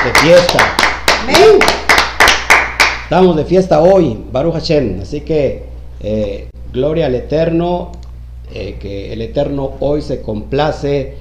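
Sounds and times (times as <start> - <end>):
applause: 0.0 - 3.1
speech: 0.1 - 1.8, 3.1 - 11.1.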